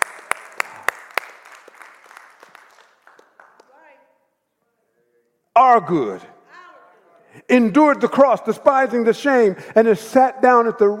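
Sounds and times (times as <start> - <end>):
audience clapping hands: 0.0 - 4.0
speech: 5.6 - 6.3, 7.5 - 10.9.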